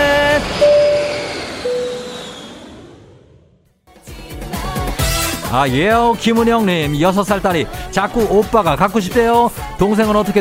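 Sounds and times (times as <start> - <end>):
airplane taking off: 0.0 - 3.7
speech: 5.5 - 10.3.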